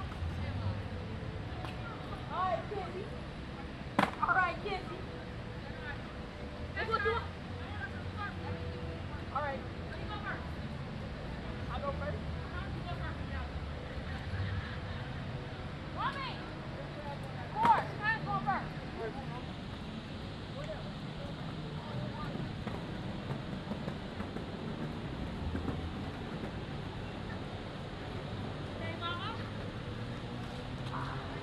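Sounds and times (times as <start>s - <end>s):
rolling skateboard wheels rumble: 0.0s - 31.4s
traffic: 0.0s - 31.4s
voices and chatter: 0.0s - 31.4s
skateboard clacks and snaps: 22.2s - 26.7s.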